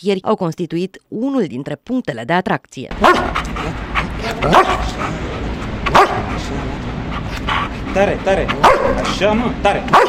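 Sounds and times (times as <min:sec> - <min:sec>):
speech: 0:00.0 - 0:06.8, 0:07.9 - 0:10.0
police dog barking: 0:03.0 - 0:03.5, 0:04.4 - 0:05.0, 0:05.9 - 0:06.4, 0:08.6 - 0:09.1.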